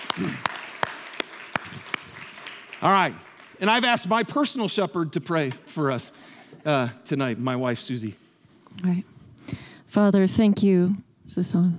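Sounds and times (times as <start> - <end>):
audience applause: 0.0 - 4.5
speech: 2.8 - 11.7.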